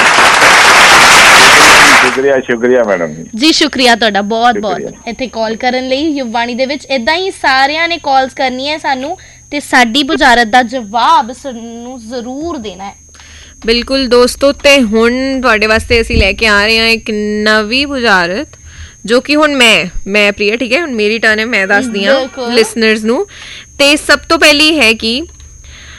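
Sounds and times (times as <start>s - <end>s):
studio audience clapping after a correct answer on a Punjabi riddle quiz show: 0.0s - 2.2s
speech: 2.2s - 13.0s, 13.6s - 25.4s.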